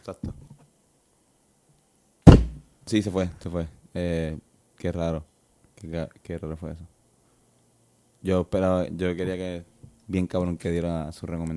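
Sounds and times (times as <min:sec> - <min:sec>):
speech: 0:00.0 - 0:00.4, 0:02.9 - 0:06.9, 0:08.2 - 0:11.5
door being shut with a heavy thunk: 0:02.3 - 0:02.6.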